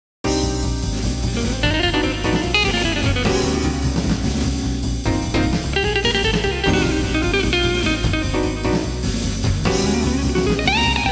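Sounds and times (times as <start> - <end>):
urban music: 0.4 - 11.1.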